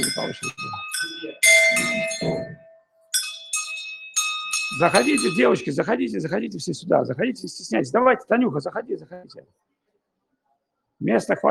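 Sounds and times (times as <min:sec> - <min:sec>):
speech: 0:00.0 - 0:01.2, 0:04.8 - 0:09.7, 0:11.0 - 0:11.4
small bell struck: 0:00.0 - 0:05.6.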